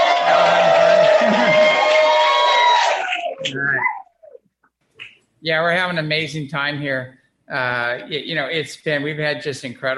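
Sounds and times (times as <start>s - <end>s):
crowd cheering: 0.0s - 4.0s
speech: 5.4s - 9.9s.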